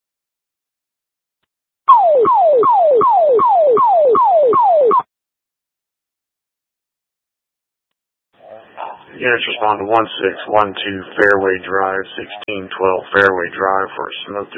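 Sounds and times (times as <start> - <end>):
fire-call dispatch alert tone of falling electronic sweeps: 1.9 - 5.1
speech: 9.2 - 14.5.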